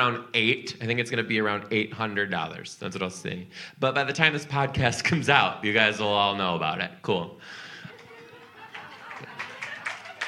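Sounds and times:
speech: 0.0s - 7.6s
laughter: 7.7s - 10.2s
audience clapping: 7.9s - 10.2s.

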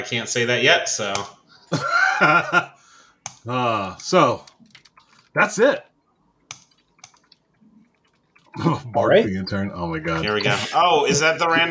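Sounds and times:
speech: 0.0s - 2.8s, 3.4s - 4.6s, 5.3s - 5.9s, 8.6s - 11.6s
laughter: 1.7s - 2.8s
typing on a computer keyboard: 3.2s - 5.4s, 6.4s - 8.6s.

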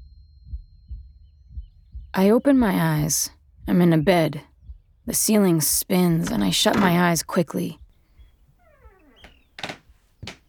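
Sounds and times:
speech: 2.2s - 4.5s, 5.1s - 7.8s
door opening: 5.7s - 7.7s, 8.6s - 10.4s
footsteps on creaky floorboards: 6.0s - 7.3s, 8.6s - 10.4s.

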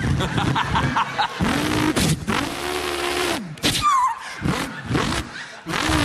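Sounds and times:
laughter: 0.0s - 1.8s, 4.1s - 6.0s
voice imitating V8 drag racer engine: 1.4s - 6.0s.

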